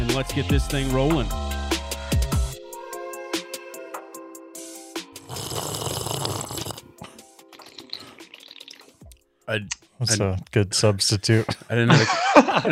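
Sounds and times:
speech: 0:00.2 - 0:01.5, 0:09.5 - 0:12.7
wet slurping: 0:05.3 - 0:09.2
laughter: 0:11.8 - 0:12.7.

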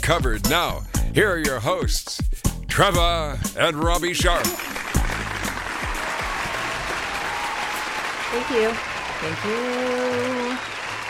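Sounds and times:
speech: 0:00.1 - 0:04.8, 0:08.3 - 0:10.7
canned applause: 0:04.1 - 0:11.0.

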